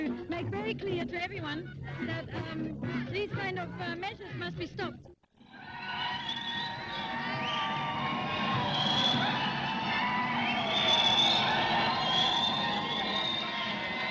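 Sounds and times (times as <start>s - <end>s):
speech: 0.4s - 5.1s
large crowd of protesters screaming: 5.4s - 14.0s.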